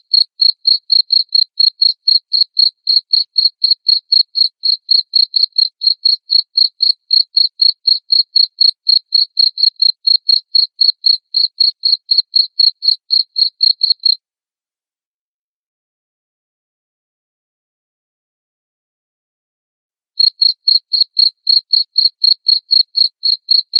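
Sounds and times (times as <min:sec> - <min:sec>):
cricket chirping: 0:00.0 - 0:14.2, 0:20.2 - 0:23.7.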